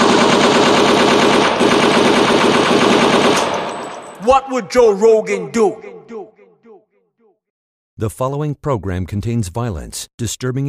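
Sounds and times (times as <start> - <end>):
automatic gunfire after a reload: 0.0 - 4.0
speech: 4.3 - 6.0, 8.0 - 10.6.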